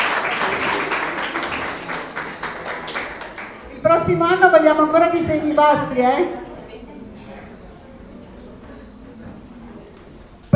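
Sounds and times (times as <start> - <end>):
audience applause: 0.0 - 3.8
speech: 4.1 - 6.5.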